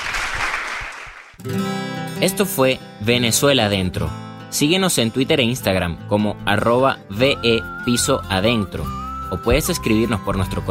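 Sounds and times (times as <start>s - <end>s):
crowd applauding: 0.0s - 1.4s
speech: 1.4s - 10.7s.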